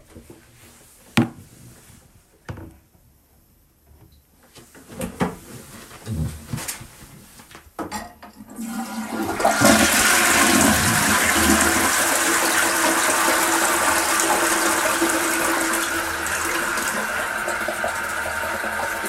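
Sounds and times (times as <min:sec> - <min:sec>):
toilet: 0:08.2 - 0:19.0.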